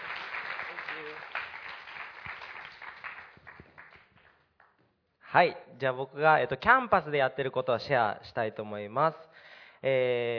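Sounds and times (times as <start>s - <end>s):
audience applause: 0.0s - 4.4s
speech: 5.3s - 10.3s.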